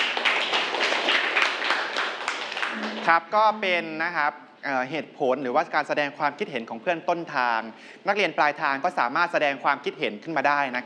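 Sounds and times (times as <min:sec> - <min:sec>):
students clapping for a classmate in class: 0:00.0 - 0:03.2
speech: 0:03.1 - 0:10.8.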